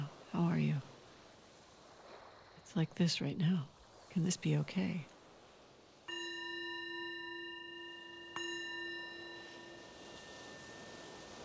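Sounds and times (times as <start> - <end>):
speech: 0.3 - 0.9, 2.8 - 5.1
meditation bell struck: 6.1 - 11.4.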